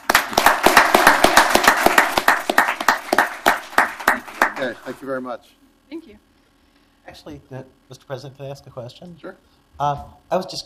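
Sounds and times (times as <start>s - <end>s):
audience applause: 0.0s - 5.0s
speech: 4.6s - 6.3s, 7.1s - 10.6s.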